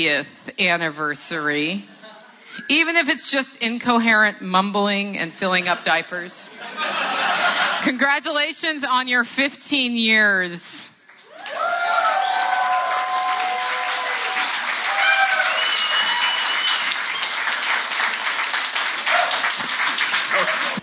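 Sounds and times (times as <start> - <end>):
speech: 0.0 - 1.9, 2.6 - 7.0, 7.8 - 10.8
laughter: 6.5 - 7.9, 20.2 - 20.8
audience applause: 11.1 - 20.8.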